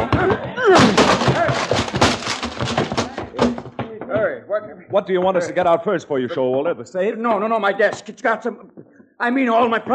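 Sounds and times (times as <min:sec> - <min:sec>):
door being busted down: 0:00.6 - 0:03.9
speech: 0:04.6 - 0:09.9.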